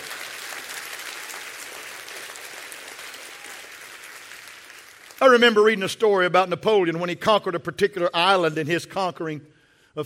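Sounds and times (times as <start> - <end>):
audience clapping hands: 0.0 - 5.8
speech: 5.2 - 10.0.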